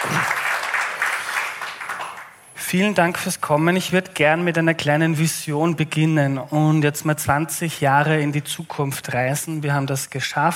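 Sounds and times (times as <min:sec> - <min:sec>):
audience applause at a panel discussion on energy: 0:00.0 - 0:02.5
speech: 0:02.7 - 0:10.5.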